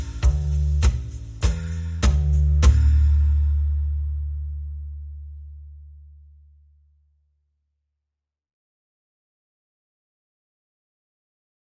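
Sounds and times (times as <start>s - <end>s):
drums: 0.0s - 3.6s
bass: 0.0s - 8.0s.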